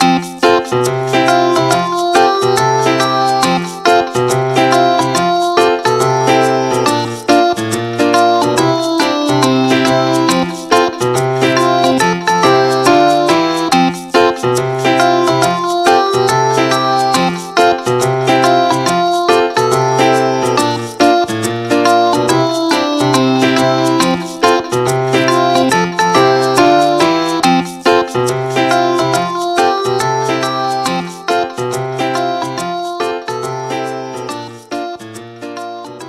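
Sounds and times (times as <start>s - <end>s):
music: 0.0s - 36.0s.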